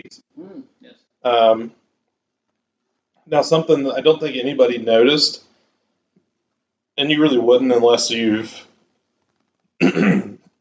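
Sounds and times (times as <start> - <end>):
speech: 0.1 - 1.8, 3.3 - 5.5, 7.0 - 8.7, 9.8 - 10.3
burp: 9.8 - 10.5.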